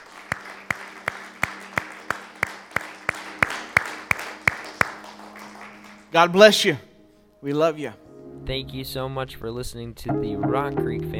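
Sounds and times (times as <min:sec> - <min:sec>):
audience clapping in rhythm: 0:00.0 - 0:06.8
speech: 0:06.1 - 0:11.1.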